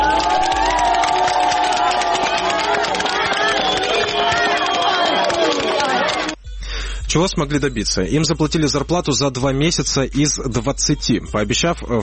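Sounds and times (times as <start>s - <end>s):
crowd applauding and cheering: 0.0s - 6.4s
speech: 7.1s - 12.0s.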